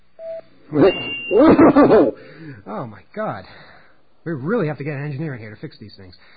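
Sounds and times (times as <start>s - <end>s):
voicemail answering tone: 0.2s - 1.5s
speech: 0.7s - 6.3s.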